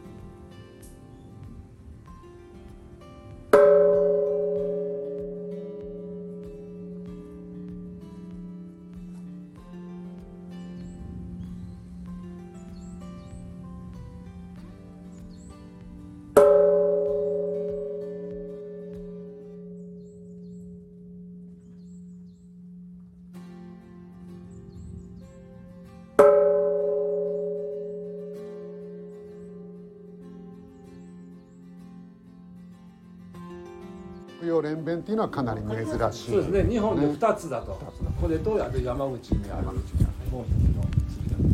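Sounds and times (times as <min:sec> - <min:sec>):
large Buddhist temple bronze bell struck: 0:03.6 - 0:09.2, 0:16.4 - 0:24.1, 0:26.2 - 0:30.6
speech: 0:34.7 - 0:41.0.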